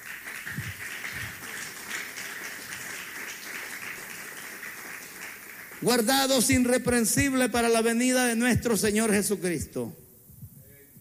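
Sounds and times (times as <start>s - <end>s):
audience clapping hands: 0.0s - 7.4s
speech: 5.8s - 10.0s.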